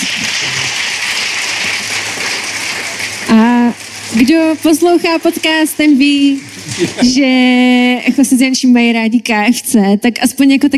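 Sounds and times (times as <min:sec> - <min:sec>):
audience applause: 0:00.0 - 0:07.9
speech: 0:03.3 - 0:10.7
laughter: 0:06.4 - 0:07.5.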